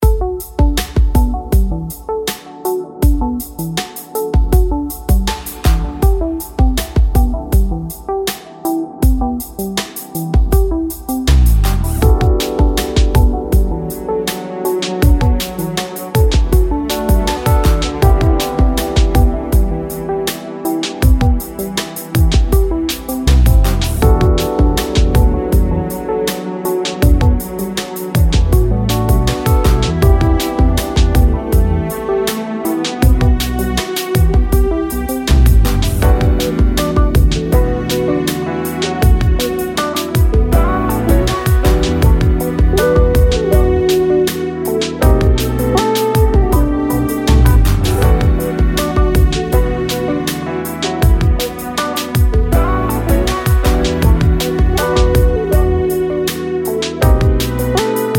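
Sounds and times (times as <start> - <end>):
lounge groove music: 0.0 - 58.1.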